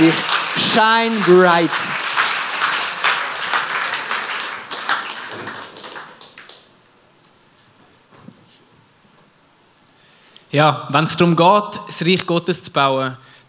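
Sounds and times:
speech: 0:00.0 - 0:02.0, 0:10.5 - 0:13.4
audience applause: 0:00.0 - 0:06.8.

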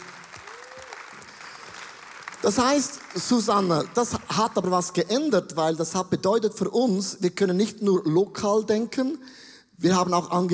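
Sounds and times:
audience applause: 0:00.0 - 0:04.7
speech: 0:02.4 - 0:10.5.

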